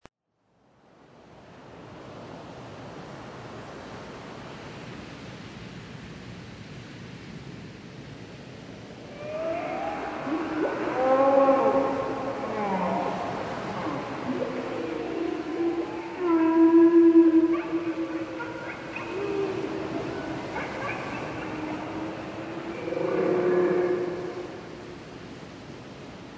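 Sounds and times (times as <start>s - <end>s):
whale song: 9.0s - 25.1s.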